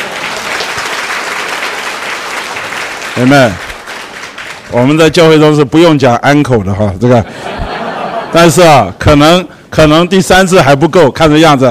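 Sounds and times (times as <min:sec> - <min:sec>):
audience applause: 0:00.0 - 0:04.8
speech: 0:03.2 - 0:03.7, 0:04.7 - 0:07.4, 0:08.3 - 0:11.7
laughter: 0:07.2 - 0:09.0.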